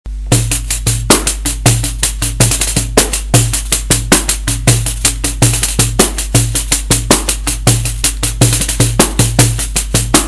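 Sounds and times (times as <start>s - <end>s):
pandeiro groove: 0.1s - 10.2s.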